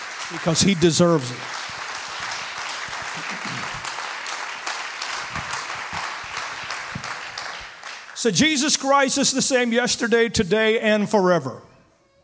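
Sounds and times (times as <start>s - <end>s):
audience applause: 0.0s - 8.6s
speech: 0.3s - 1.6s, 8.2s - 11.7s.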